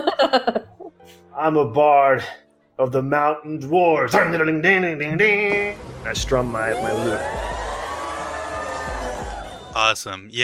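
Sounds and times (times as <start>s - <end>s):
speech: 0.3s - 0.7s, 1.4s - 7.5s, 9.8s - 10.4s
crowd cheering: 5.5s - 10.0s.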